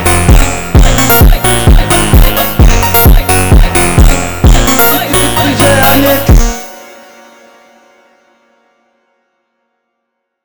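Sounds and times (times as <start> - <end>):
phonk montagem music: 0.0 - 6.7.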